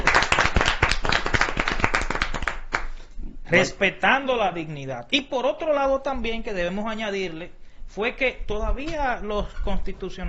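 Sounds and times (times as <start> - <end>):
crowd applause: 0.0 - 2.9
speech: 3.5 - 10.2.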